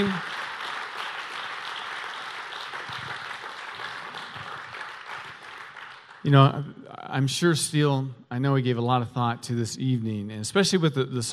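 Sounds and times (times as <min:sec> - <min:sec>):
speech: 0:00.0 - 0:00.3, 0:06.2 - 0:11.3
audience applause: 0:00.0 - 0:06.6.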